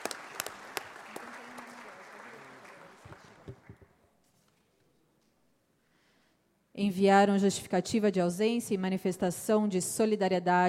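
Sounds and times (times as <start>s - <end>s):
applause: 0.0s - 3.9s
speech: 6.8s - 10.6s.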